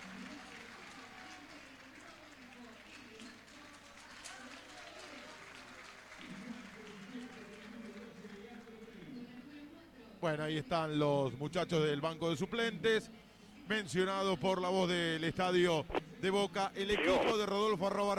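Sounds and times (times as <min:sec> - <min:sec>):
stadium crowd applauding: 0:00.0 - 0:08.5
speech: 0:10.2 - 0:18.1.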